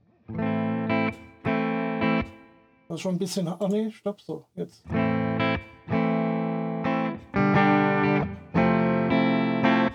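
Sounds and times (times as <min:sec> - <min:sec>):
electric guitar with clean tone and reverb playing sustained chords: 0:00.1 - 0:02.9, 0:04.9 - 0:09.9
speech: 0:00.3 - 0:00.5, 0:02.9 - 0:05.2.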